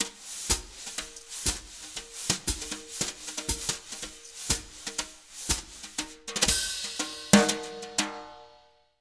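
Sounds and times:
jazz Latin drum loops: 0:00.0 - 0:08.6.

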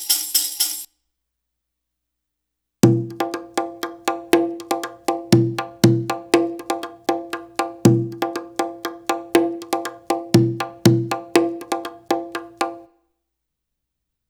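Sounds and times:
Arabic rhythm percussion: 0:00.0 - 0:00.9, 0:02.8 - 0:12.9.

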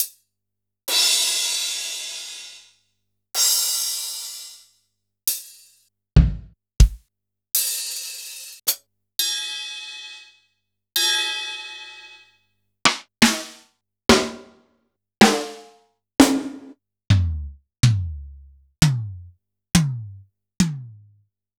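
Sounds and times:
Kurzweil drum kit: 0:00.9 - 0:02.7, 0:03.4 - 0:04.6, 0:06.2 - 0:07.0, 0:12.9 - 0:14.6, 0:15.2 - 0:21.0.

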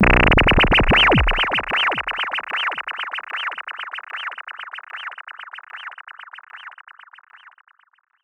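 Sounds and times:
SH-09 synthesizer with delay: 0:00.0 - 0:02.4.

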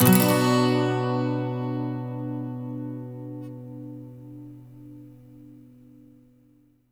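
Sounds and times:
12 string electric and acoustic guitar loop in B minor: 0:00.0 - 0:06.0.

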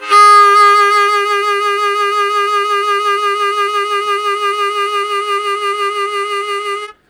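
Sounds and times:
harmonica strong vibrato sustained note A-flat: 0:00.0 - 0:07.0.

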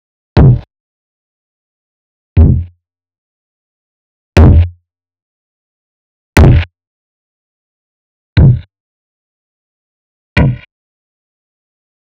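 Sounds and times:
Alesis Performance Pad kicks: 0:00.4 - 0:00.7, 0:02.4 - 0:02.7, 0:04.4 - 0:04.7, 0:06.4 - 0:06.7, 0:08.4 - 0:08.7, 0:10.4 - 0:10.7.

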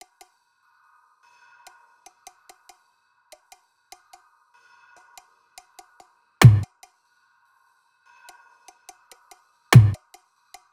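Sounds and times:
percussion loop at 145 bpm: 0:06.4 - 0:06.6, 0:09.8 - 0:10.0.

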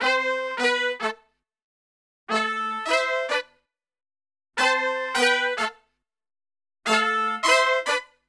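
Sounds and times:
pop brass: 0:00.0 - 0:01.4, 0:02.3 - 0:03.6, 0:04.6 - 0:06.0, 0:06.8 - 0:08.2.

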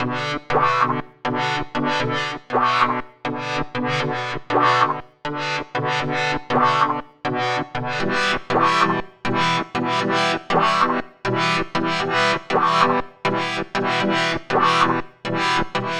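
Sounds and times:
power modulator: 0:00.0 - 0:15.9.

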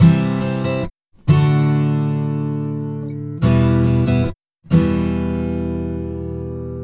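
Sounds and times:
acoustic pop guitar at 128 BPM in E minor: 0:00.0 - 0:06.8.

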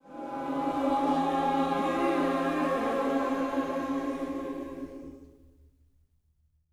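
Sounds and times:
vocal gospel singing: 0:00.0 - 0:05.4.

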